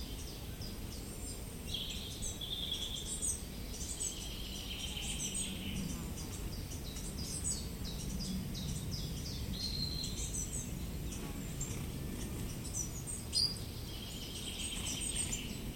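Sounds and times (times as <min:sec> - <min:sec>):
birdsong in a tunnel of bushes: 0:00.0 - 0:15.7
steady low rumbling hum: 0:03.7 - 0:15.7.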